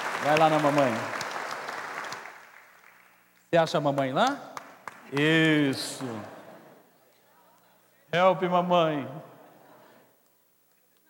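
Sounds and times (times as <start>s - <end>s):
audience applause: 0.0s - 3.3s, 4.6s - 6.7s
speech: 0.2s - 1.2s, 3.5s - 4.5s, 5.1s - 6.4s, 8.1s - 9.3s.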